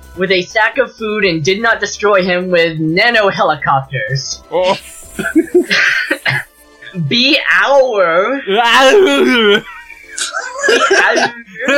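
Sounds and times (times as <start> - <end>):
speech: 0.2 - 6.0, 6.9 - 11.7
voice imitating a constipated straining moan: 4.6 - 6.4, 8.5 - 9.6, 10.6 - 11.7
laughter: 4.7 - 7.0, 8.9 - 11.7.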